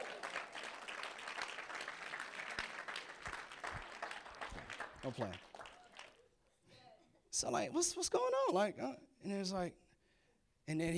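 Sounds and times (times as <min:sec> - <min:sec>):
audience clapping: 0:00.0 - 0:06.3
speech: 0:05.0 - 0:05.5, 0:07.3 - 0:09.8, 0:10.7 - 0:10.9.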